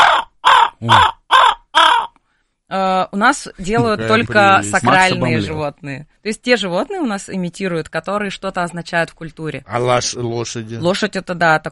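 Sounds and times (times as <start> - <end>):
raven cawing: 0.0 - 2.2
speech: 0.8 - 1.2, 3.1 - 11.7.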